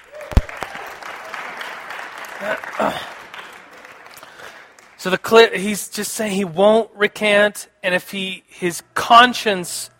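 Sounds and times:
audience applause: 0.0s - 5.0s
speech: 2.4s - 3.2s, 5.0s - 9.9s.

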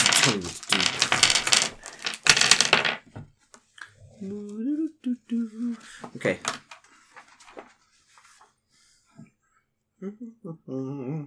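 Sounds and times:
dice rolled across a hard surface: 0.0s - 3.1s
speech: 0.2s - 0.8s, 4.2s - 4.5s, 6.2s - 6.6s, 10.2s - 11.2s.

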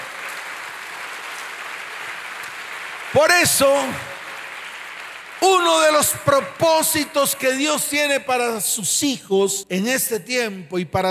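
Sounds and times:
audience applause: 0.0s - 6.4s
speech: 3.1s - 4.1s, 5.4s - 11.1s.

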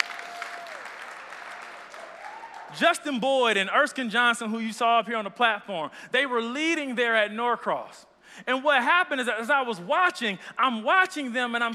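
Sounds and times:
audience clapping: 0.0s - 2.8s
speech: 2.7s - 11.7s.

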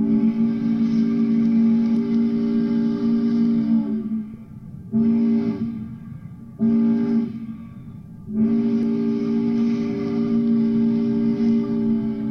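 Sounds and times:
steamboat whistle calls: 0.0s - 12.3s.

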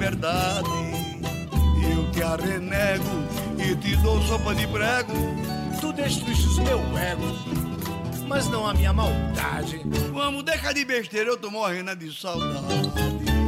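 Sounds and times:
lively samba song with singing voice: 0.0s - 7.7s, 8.3s - 10.8s
speech: 0.1s - 0.7s, 2.3s - 7.7s, 8.3s - 13.3s.

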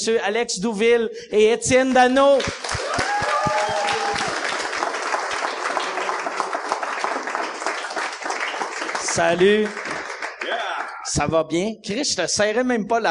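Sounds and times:
speech: 0.0s - 3.1s, 9.2s - 9.9s, 11.1s - 13.0s
audience applause: 2.4s - 11.0s.

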